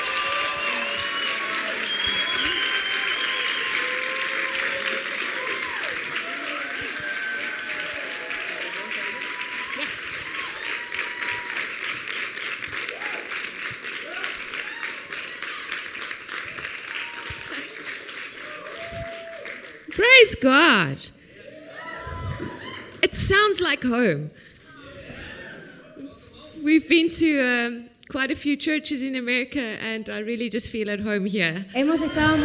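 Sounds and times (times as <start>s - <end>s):
church audience applauding to welcome guest pastors: 0.0s - 20.8s
speech: 20.4s - 21.2s, 23.1s - 24.5s, 26.7s - 32.4s.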